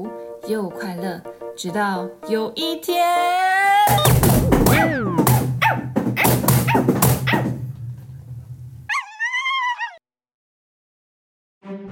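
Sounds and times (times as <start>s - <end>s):
speech: 0.0s - 5.0s
dog barking excitedly: 3.9s - 7.7s, 8.9s - 10.0s
dog whining: 4.7s - 7.6s, 8.9s - 10.0s
low steady hum: 7.5s - 8.9s.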